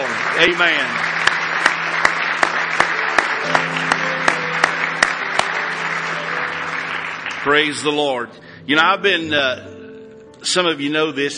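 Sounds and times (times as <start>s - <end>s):
audience applause: 0.0s - 8.1s
speech: 0.4s - 1.0s, 7.4s - 9.7s, 10.4s - 11.3s.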